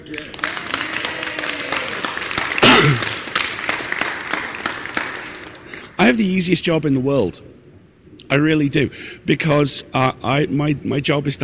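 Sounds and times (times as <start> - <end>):
speech: 0.0 - 0.6, 6.0 - 7.5, 8.3 - 11.4
audience applause: 0.0 - 5.8.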